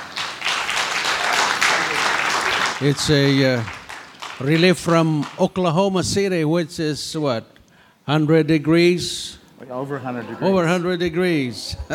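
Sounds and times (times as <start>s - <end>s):
congregation applauding a welcome for a visiting pastor: 0.0s - 5.8s
speech: 2.8s - 3.8s, 4.4s - 11.9s.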